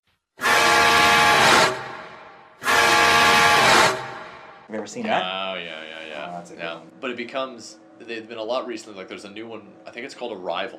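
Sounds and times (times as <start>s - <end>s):
loud brassy truck horn blaring: 0.4s - 4.6s
speech: 4.7s - 10.7s.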